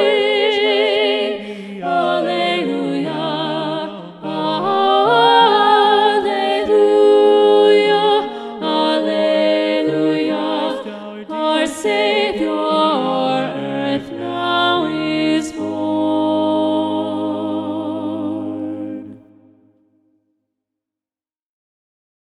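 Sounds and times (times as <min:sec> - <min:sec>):
SATB choir singing with alto voice predominant: 0:00.0 - 0:19.8.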